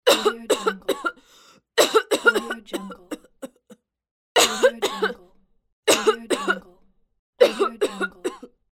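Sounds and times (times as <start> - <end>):
woman coughing: 0.1 - 1.2, 1.8 - 5.3, 5.9 - 6.8, 7.4 - 8.6.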